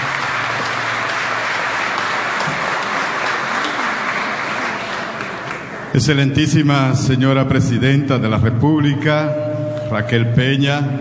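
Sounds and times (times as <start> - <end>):
crowd applauding: 0.0 - 6.2
speech: 6.0 - 10.9.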